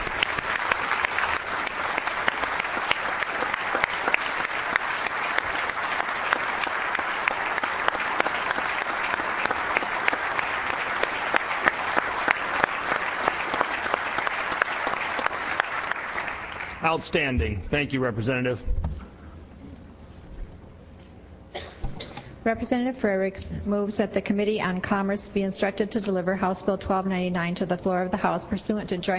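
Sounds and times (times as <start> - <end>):
audience applause welcoming award winners in a state House chamber: 0.0 - 17.3
speech: 17.0 - 18.7, 22.4 - 29.1.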